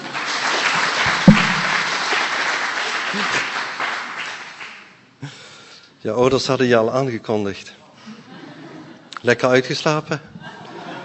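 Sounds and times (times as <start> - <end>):
audience applause: 0.0 - 4.9
speech: 3.1 - 3.5, 6.0 - 7.8, 9.2 - 10.4
laughter: 8.0 - 9.1, 10.4 - 11.0.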